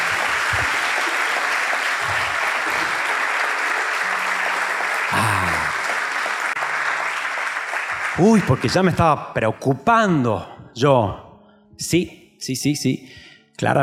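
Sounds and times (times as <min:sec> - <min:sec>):
audience applause: 0:00.0 - 0:09.0
speech: 0:08.2 - 0:11.2, 0:11.8 - 0:13.8.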